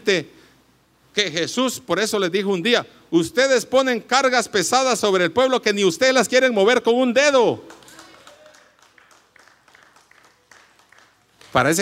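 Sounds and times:
speech: 0.0 - 0.4, 1.2 - 7.8, 11.6 - 11.8
audience applause: 7.7 - 11.8.

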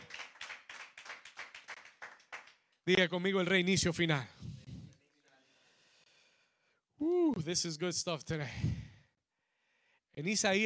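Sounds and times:
loud audience applause: 0.0 - 2.6
speech: 2.9 - 4.6, 7.4 - 8.8, 10.2 - 10.6.

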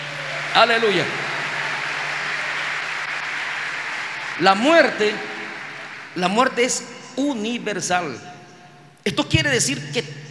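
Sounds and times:
audience applause: 0.0 - 7.1
speech: 0.5 - 1.2, 4.4 - 5.3, 6.1 - 8.3, 9.0 - 10.3.

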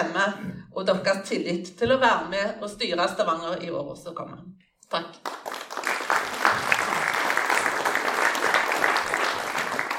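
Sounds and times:
speech: 0.0 - 5.5
audience applause: 5.3 - 9.9.

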